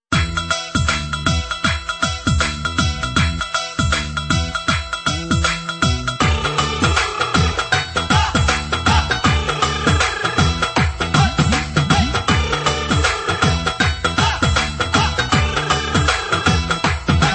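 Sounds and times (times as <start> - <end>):
Punjabi ringtone: 0.1 - 17.3.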